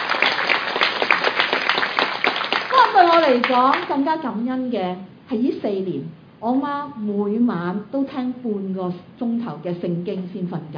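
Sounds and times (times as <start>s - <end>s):
audience applause: 0.0s - 3.8s
speech: 3.0s - 10.7s.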